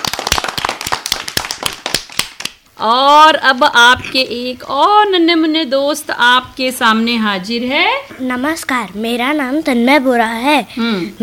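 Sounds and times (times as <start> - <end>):
audience applause for a child performer: 0.0 - 2.5
speech: 2.8 - 11.2.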